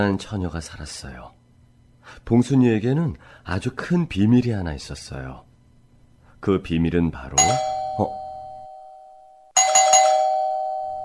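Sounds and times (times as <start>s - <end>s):
speech: 0.0s - 1.4s, 2.1s - 5.5s, 6.4s - 8.2s
faint hum: 0.0s - 11.0s
doorbell ringing with a bright electronic chime: 7.4s - 11.0s.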